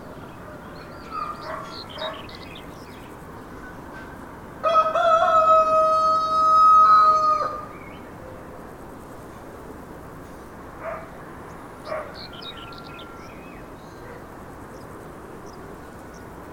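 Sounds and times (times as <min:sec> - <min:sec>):
rooster crowing: 0:04.6 - 0:07.7, 0:12.1 - 0:13.6.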